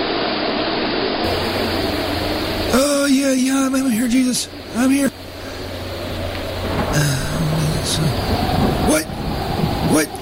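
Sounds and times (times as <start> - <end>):
rain outdoors: 0.0 - 10.2
wind outdoors: 0.0 - 10.2
speech: 3.7 - 5.1, 7.9 - 9.2.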